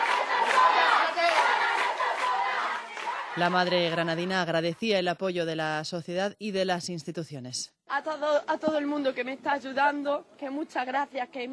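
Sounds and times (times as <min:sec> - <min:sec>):
crowd applauding and cheering in support: 0:00.0 - 0:04.1
speech: 0:03.4 - 0:11.5.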